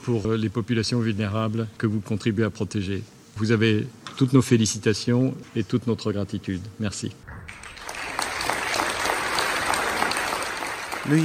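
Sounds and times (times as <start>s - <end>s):
speech: 0.0s - 7.4s, 11.1s - 11.2s
lively crowd applause after a speech: 7.3s - 11.2s.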